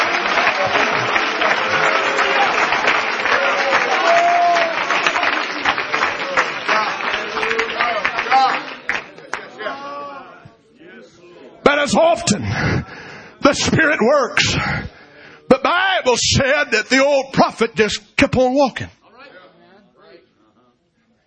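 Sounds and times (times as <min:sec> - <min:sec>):
audience clapping: 0:00.0 - 0:09.7
speech: 0:12.2 - 0:12.9, 0:13.5 - 0:15.0, 0:16.0 - 0:19.0.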